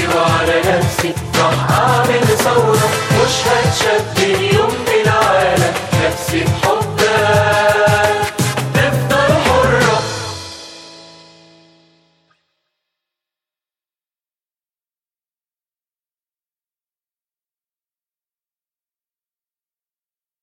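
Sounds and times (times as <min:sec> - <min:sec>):
Arabic anthem: 0:00.0 - 0:10.8.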